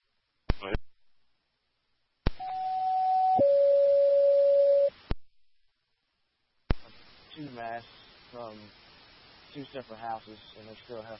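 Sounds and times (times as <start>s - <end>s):
fire dispatch telephone tone: 2.4s - 4.9s
speech: 7.8s - 8.8s, 9.5s - 11.1s.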